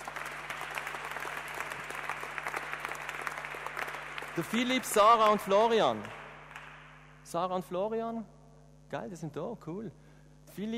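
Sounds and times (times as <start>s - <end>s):
crowd applauding: 0.0s - 7.0s
speech: 4.4s - 6.2s, 7.3s - 8.3s, 8.9s - 10.0s, 10.6s - 10.7s.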